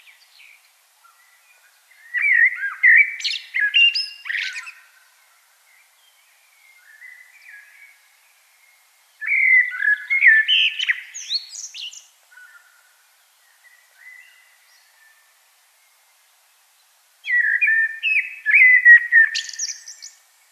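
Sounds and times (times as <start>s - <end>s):
common blackbird singing: 0.0s - 5.0s, 5.7s - 8.0s, 8.6s - 12.8s, 17.2s - 20.2s.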